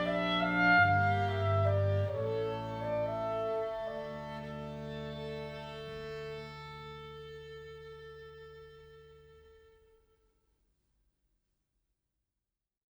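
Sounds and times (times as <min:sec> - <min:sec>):
double bass: 0:00.0 - 0:09.4
clarinet: 0:00.0 - 0:09.9
violin: 0:00.0 - 0:09.9.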